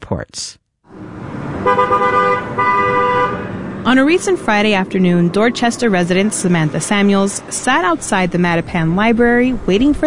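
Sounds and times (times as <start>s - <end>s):
speech: 0.1s - 0.6s, 1.6s - 2.2s, 3.9s - 10.0s
low traffic rumble on Blue Hill Avenue: 0.9s - 10.0s
car horns honking in clogged traffic on Blue Hill Avenue in Dorchester: 1.6s - 7.1s.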